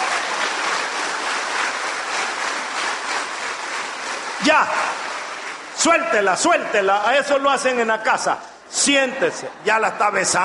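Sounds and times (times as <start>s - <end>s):
audience applause: 0.0s - 8.3s
speech: 4.4s - 5.0s, 5.8s - 10.4s.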